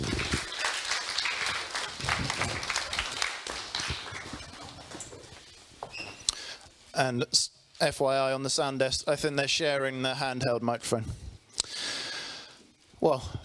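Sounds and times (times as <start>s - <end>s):
audience applause: 0.0s - 5.3s
speech: 7.0s - 11.2s, 13.0s - 13.4s.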